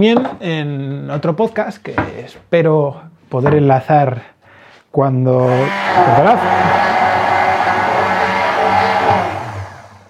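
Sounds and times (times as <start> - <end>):
speech: 0.0 - 4.3, 4.9 - 7.0
blender running: 5.4 - 10.0.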